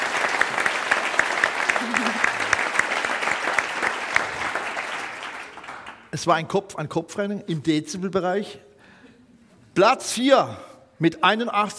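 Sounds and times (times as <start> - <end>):
audience applause: 0.0 - 6.1
speech: 6.2 - 8.7, 9.8 - 11.7.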